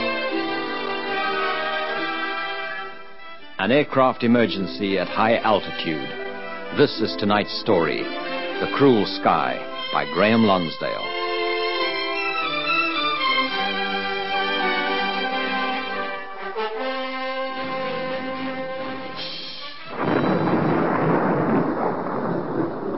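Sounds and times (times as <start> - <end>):
dramatic orchestral music: 0.0 - 21.6
speech: 3.6 - 11.1
loud rolling thunder: 19.9 - 22.9
rushing stormy roar: 19.9 - 22.9.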